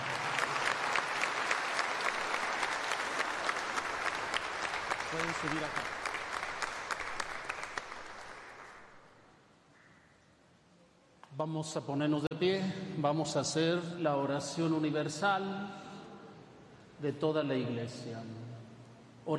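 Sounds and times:
audience applauding: 0.0s - 9.1s
speech: 5.2s - 6.0s, 11.4s - 15.8s, 17.0s - 18.4s.

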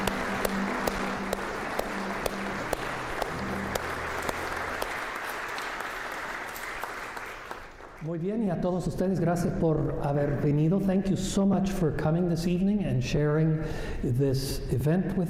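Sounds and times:
audience applauding: 0.0s - 8.2s
speech: 8.0s - 15.2s.

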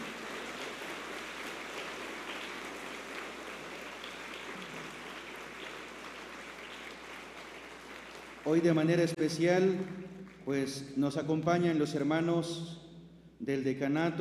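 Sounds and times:
crowd clapping: 0.0s - 10.8s
speech: 8.4s - 12.8s, 13.4s - 14.1s.

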